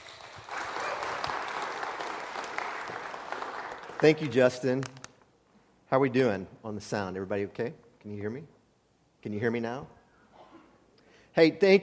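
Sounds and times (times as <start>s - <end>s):
church congregation applause welcoming a guest speaker to a morning service: 0.0s - 4.4s
speech: 4.0s - 5.0s, 5.9s - 8.6s, 9.2s - 10.0s, 11.4s - 11.8s.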